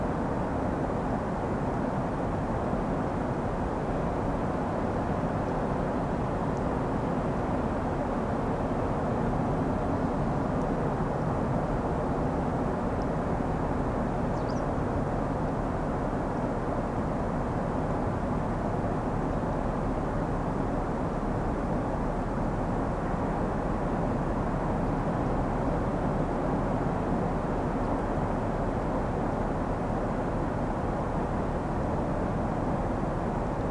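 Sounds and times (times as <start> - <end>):
sea: 0.0 - 33.7
bird: 14.3 - 14.7.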